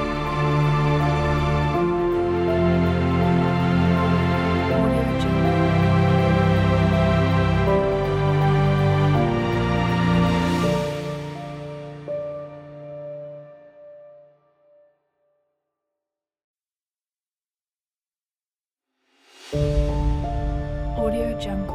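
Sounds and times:
dramatic piano: 0.0 - 14.9, 19.5 - 21.7.

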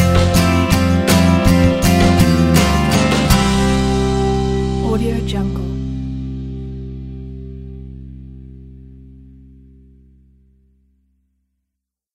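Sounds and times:
acoustic indie rock background music: 0.0 - 9.8.

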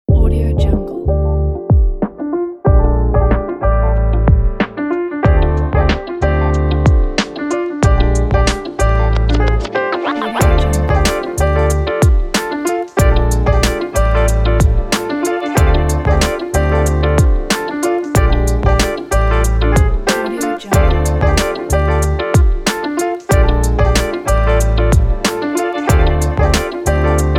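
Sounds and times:
jazz hip hop music: 0.1 - 27.3.

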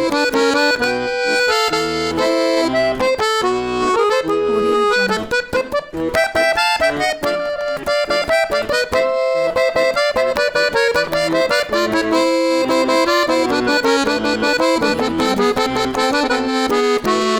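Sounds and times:
Russian accordion: 0.0 - 17.3.

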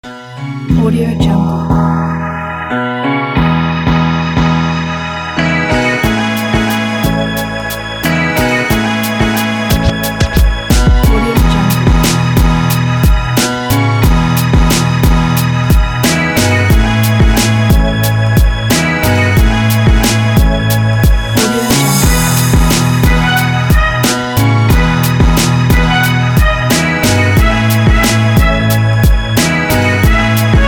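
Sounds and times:
hip hop music: 0.0 - 30.6.

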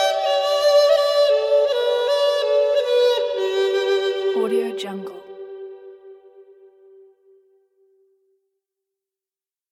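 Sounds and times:
Chinese dizi flute melody: 0.0 - 7.4.

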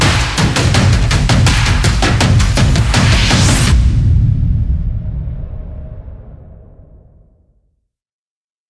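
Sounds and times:
drums: 0.0 - 5.8.

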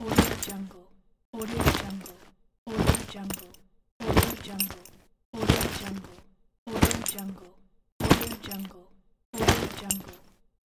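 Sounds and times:
soldier equipping gear: 0.0 - 0.7, 1.4 - 7.4, 8.0 - 8.7, 9.4 - 10.3.

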